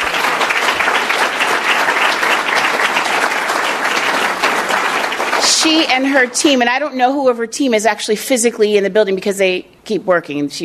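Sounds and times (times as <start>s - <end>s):
audience applause: 0.0s - 6.3s
speech: 5.6s - 10.6s.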